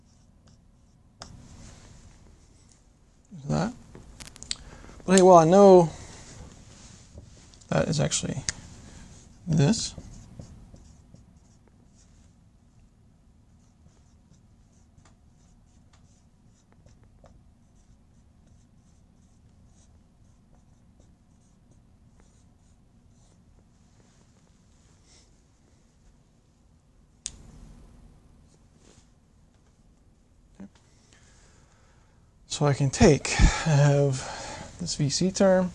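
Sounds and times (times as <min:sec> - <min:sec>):
writing on a board: 0:00.0 - 0:01.4, 0:09.2 - 0:12.1, 0:13.6 - 0:23.4
speech: 0:05.1 - 0:06.0, 0:07.8 - 0:08.6, 0:09.5 - 0:10.0, 0:32.6 - 0:35.7.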